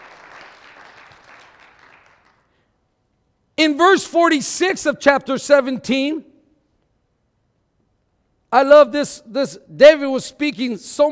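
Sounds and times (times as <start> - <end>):
audience clapping: 0.0 - 2.6
speech: 3.6 - 6.3, 8.5 - 11.0.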